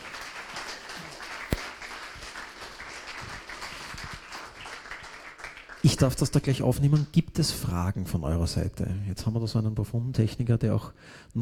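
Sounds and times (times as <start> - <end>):
audience applause: 0.0 - 6.4
speech: 5.8 - 11.4.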